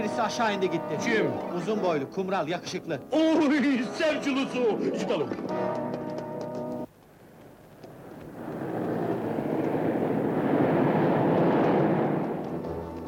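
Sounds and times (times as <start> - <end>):
speech: 0.1 - 5.8
cars passing by: 7.9 - 13.0.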